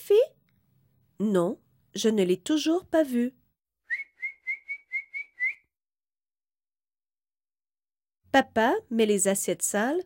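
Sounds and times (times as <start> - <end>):
speech: 1.2 - 3.4, 8.4 - 10.0
kettle whistling as water boils: 3.9 - 5.6.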